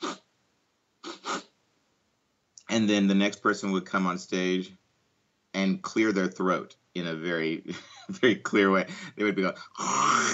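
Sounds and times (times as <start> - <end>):
voice imitating a little sniffle: 0.0 - 0.3, 1.0 - 1.5
speech: 2.8 - 4.8, 5.6 - 10.3.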